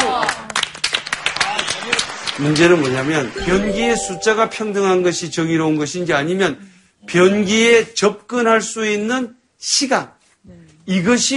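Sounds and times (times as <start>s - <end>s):
audience applause: 0.0s - 3.4s
speech: 2.4s - 11.3s.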